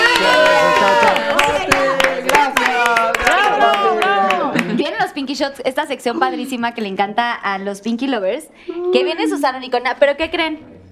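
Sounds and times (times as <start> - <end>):
audience applause: 0.0 - 4.9
speech: 5.4 - 10.7.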